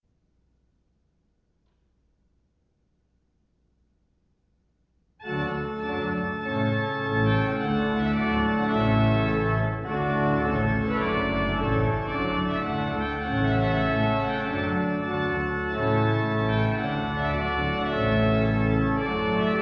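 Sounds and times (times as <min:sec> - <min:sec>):
trumpet piece: 0:05.2 - 0:19.6.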